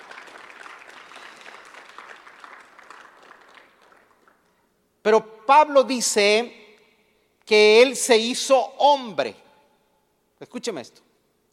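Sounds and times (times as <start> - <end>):
audience applause: 0.0 - 4.5
speech: 5.0 - 6.6, 7.5 - 9.4, 10.4 - 11.1.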